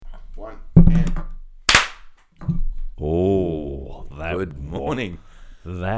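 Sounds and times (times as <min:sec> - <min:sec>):
speech: 0:00.4 - 0:01.0, 0:04.3 - 0:05.9
single sync hand clap: 0:01.7 - 0:02.1.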